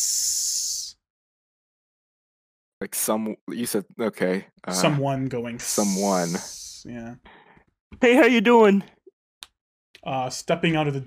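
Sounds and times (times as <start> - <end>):
person imitating a snake hiss: 0.0 - 1.0, 5.6 - 6.9
speech: 2.8 - 9.0, 10.0 - 11.0.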